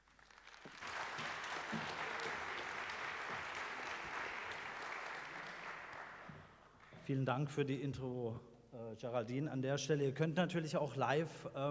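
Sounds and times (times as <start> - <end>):
audience applause: 0.0 - 6.9
speech: 7.1 - 11.6.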